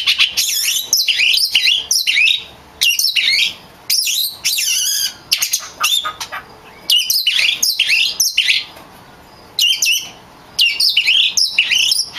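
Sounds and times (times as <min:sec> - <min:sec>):
champion Oriental magpie-robin singing a medley of whistles and trills: 0:00.0 - 0:12.1.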